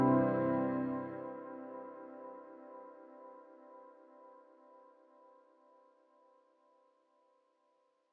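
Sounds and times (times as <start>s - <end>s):
synth piano: 0.0s - 4.4s.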